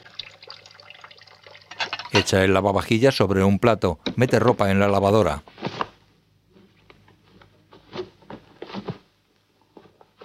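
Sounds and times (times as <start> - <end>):
water running into a kitchen sink: 0.0 - 2.2
speech: 2.1 - 5.5.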